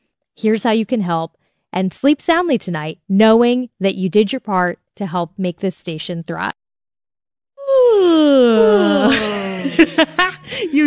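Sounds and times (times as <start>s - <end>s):
speech: 0.4s - 6.6s, 8.3s - 10.8s
person yawning: 7.6s - 9.6s
laughter: 8.8s - 10.8s.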